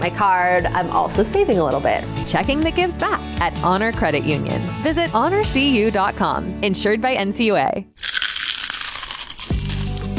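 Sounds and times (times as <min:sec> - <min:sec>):
speech: 0:00.0 - 0:08.2
biting into crunchy Clementine's onion rings: 0:08.0 - 0:10.1.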